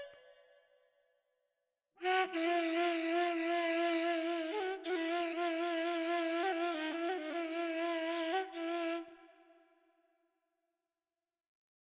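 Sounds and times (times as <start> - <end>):
ney flute playing a Persian radif piece: 2.0 - 9.2.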